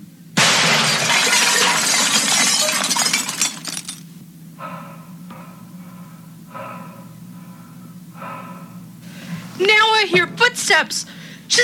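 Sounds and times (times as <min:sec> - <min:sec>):
low steady hum: 0:00.0 - 0:11.6
mirror glass shattering: 0:00.4 - 0:04.0
speech: 0:10.1 - 0:11.6.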